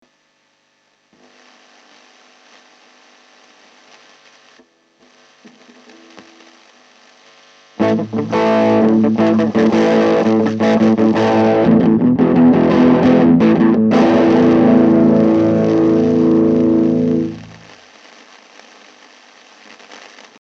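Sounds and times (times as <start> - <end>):
denoised guitar: 5.0 - 6.9, 7.8 - 17.8.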